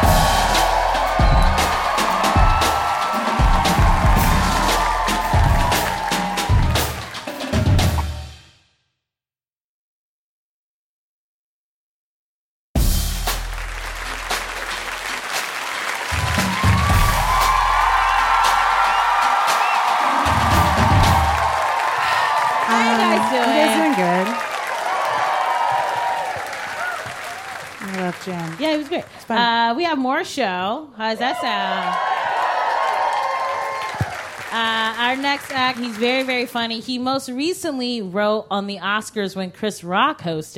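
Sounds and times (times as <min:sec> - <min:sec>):
crowd cheering and whooping: 0:00.0 - 0:07.2, 0:14.6 - 0:28.4, 0:31.2 - 0:34.7
crowd clapping: 0:00.0 - 0:07.8, 0:13.0 - 0:29.5, 0:31.3 - 0:36.8
speech: 0:28.9 - 0:32.1, 0:34.5 - 0:40.5.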